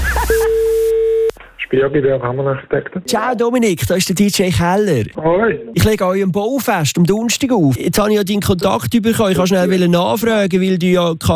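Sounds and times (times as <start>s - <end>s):
telephone line tone beep: 0.0s - 1.4s
speech: 1.7s - 11.3s.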